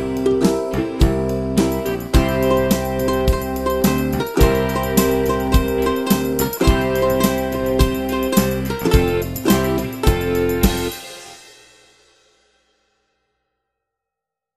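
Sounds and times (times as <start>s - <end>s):
ukulele: 0.0s - 11.4s.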